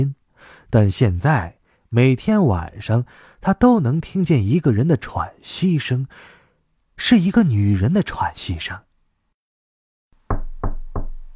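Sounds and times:
speech: 0:00.0 - 0:06.4, 0:07.0 - 0:08.9
knocking on a door: 0:10.3 - 0:11.3.

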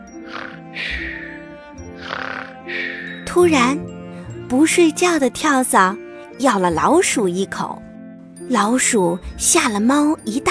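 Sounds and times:
old woman snoring: 0:00.1 - 0:03.2
speech: 0:03.4 - 0:03.9, 0:04.5 - 0:07.8, 0:08.5 - 0:10.4.

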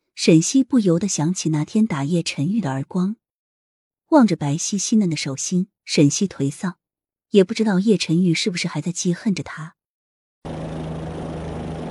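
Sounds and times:
speech: 0:00.2 - 0:03.2, 0:04.1 - 0:09.8
helicopter rotor whirring: 0:10.5 - 0:11.8.

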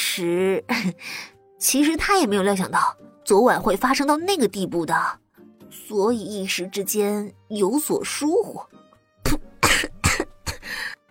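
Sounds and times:
speech: 0:00.2 - 0:05.2, 0:05.8 - 0:08.8
person coughing after choking on milk: 0:09.2 - 0:10.9.

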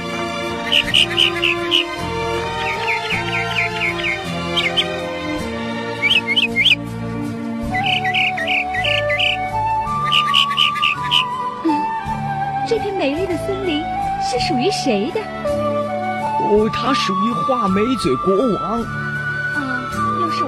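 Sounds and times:
forest birdsong: 0:00.0 - 0:11.6
low tonal background: 0:00.0 - 0:20.4
speech: 0:00.7 - 0:02.2, 0:12.8 - 0:15.6, 0:16.5 - 0:19.1.

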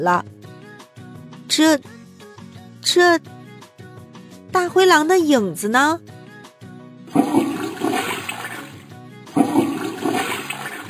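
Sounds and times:
speech: 0:00.0 - 0:00.4, 0:01.5 - 0:02.0, 0:02.8 - 0:03.4, 0:04.5 - 0:06.1
toilet flushing water: 0:07.1 - 0:10.8.

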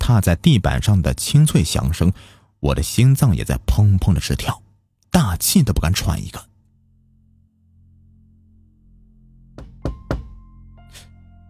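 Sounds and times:
speech: 0:00.1 - 0:06.5
firm knocking on a door: 0:09.6 - 0:10.5.

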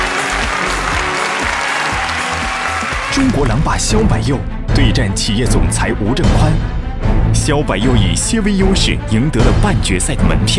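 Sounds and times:
audience applause: 0:00.0 - 0:03.6
speech: 0:03.2 - 0:10.5.

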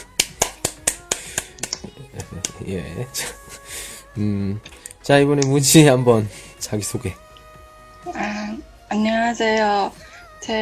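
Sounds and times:
hand clapping: 0:00.0 - 0:02.6
speech: 0:02.2 - 0:03.4, 0:04.2 - 0:07.2, 0:09.0 - 0:10.6.

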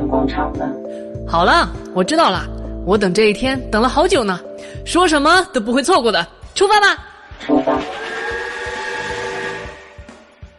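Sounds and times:
speech: 0:00.2 - 0:08.0
train departing through platform hatch: 0:07.4 - 0:10.3.

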